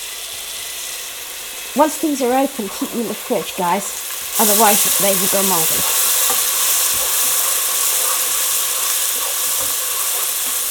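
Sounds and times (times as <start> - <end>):
food frying in hot oil: 0.0 - 10.7
speech: 1.8 - 6.0
scraping and knocking from stirring: 5.7 - 10.7.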